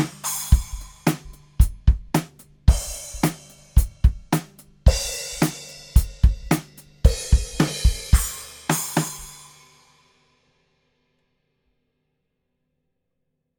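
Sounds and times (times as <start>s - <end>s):
Paiste Thin cymbal: 0.0s - 10.4s.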